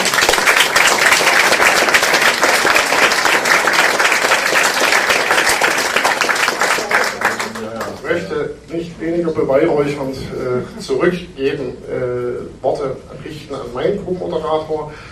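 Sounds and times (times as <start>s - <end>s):
audience applause: 0.0s - 8.1s
speech: 8.7s - 15.1s.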